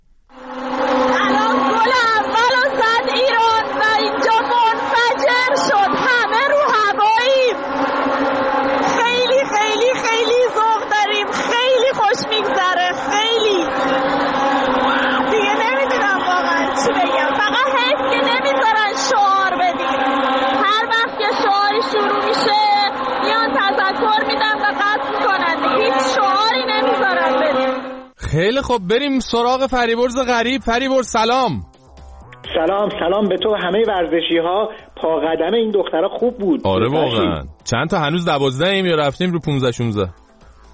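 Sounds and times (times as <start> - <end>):
stadium crowd cheering after a goal: 0.4 - 28.0
speech: 28.6 - 31.7, 32.6 - 40.2.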